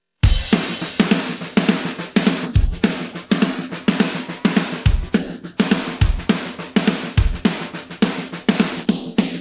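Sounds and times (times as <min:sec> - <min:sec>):
drum intro: 0:00.2 - 0:09.4.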